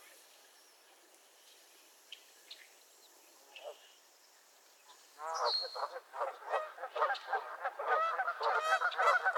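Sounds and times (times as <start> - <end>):
geese honking: 5.2 - 9.3.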